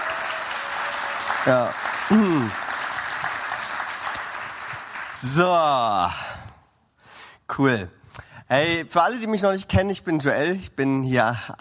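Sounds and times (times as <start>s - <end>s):
audience applause: 0.0s - 5.8s
speech: 1.4s - 2.7s, 5.2s - 6.4s, 7.5s - 11.5s.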